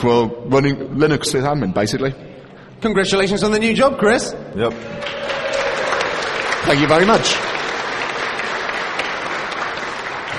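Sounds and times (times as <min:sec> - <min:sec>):
speech: 0:00.0 - 0:05.6, 0:06.6 - 0:07.5
group clapping: 0:04.7 - 0:10.3.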